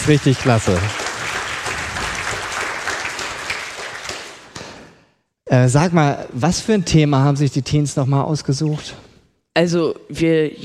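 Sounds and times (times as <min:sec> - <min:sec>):
speech: 0:00.0 - 0:01.0, 0:05.5 - 0:09.0, 0:09.6 - 0:10.6
audience clapping: 0:00.0 - 0:05.0.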